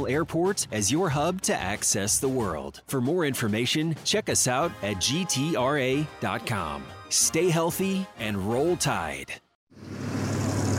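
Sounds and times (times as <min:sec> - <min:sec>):
speech: 0:00.0 - 0:09.4
rush-hour road traffic: 0:09.7 - 0:10.7.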